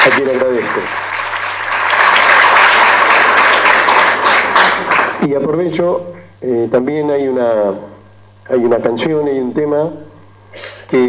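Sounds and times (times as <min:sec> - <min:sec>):
applause for the director of the band: 0:00.0 - 0:05.2
speech: 0:00.1 - 0:01.1, 0:05.2 - 0:11.0.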